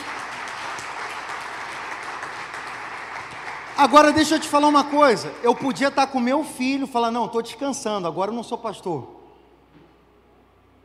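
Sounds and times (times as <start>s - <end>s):
crowd applause: 0.0s - 6.2s
speech: 3.8s - 9.2s.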